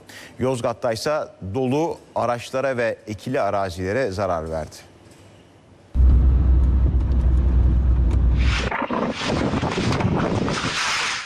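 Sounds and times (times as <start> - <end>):
speech: 0.4 - 4.9
sandstorm wind: 6.0 - 10.8.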